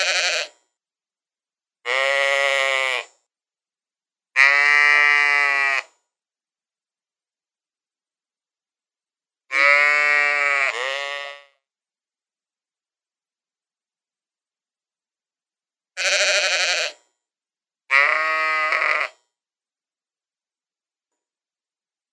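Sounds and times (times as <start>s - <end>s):
sheep giving wavering bleats: 0.0s - 0.6s, 1.9s - 3.1s, 4.4s - 5.9s, 9.5s - 11.5s, 16.0s - 17.0s, 17.9s - 19.2s.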